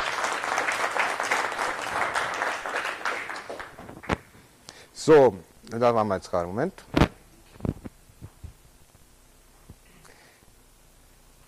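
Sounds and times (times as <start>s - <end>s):
audience applause: 0.0s - 4.2s
speech: 5.0s - 7.0s.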